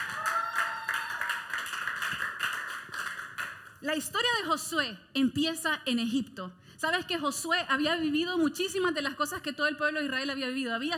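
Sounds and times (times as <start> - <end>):
audience applause: 0.0 - 3.6
speech: 3.8 - 10.9.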